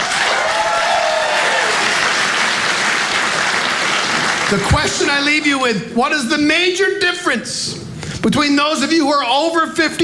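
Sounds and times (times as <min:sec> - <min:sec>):
audience applause: 0:00.0 - 0:05.0
speech: 0:04.5 - 0:10.0.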